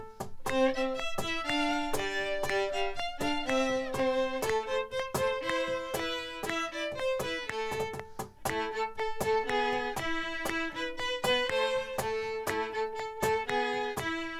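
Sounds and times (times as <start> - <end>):
cajon play-along: 0.0 - 14.3.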